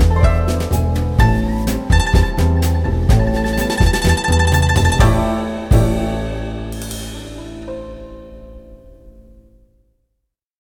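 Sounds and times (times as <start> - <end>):
guzheng playing: 0.1 - 8.3.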